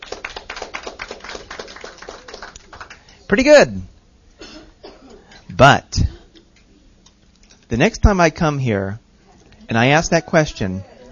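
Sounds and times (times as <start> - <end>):
audience clapping hands: 0.0 - 3.2
speech: 3.3 - 3.9, 5.6 - 6.0, 7.7 - 9.0, 9.7 - 10.9.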